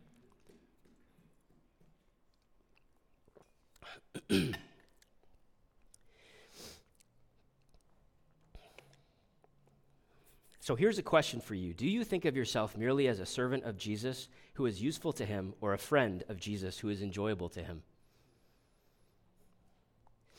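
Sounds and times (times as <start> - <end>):
person drinking water: 2.2 - 10.5
speech: 10.7 - 17.9.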